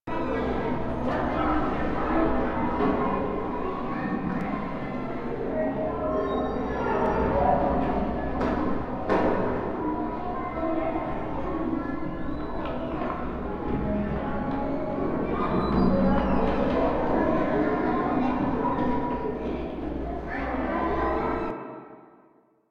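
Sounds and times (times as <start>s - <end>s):
hallway ambience: 0.1s - 21.8s.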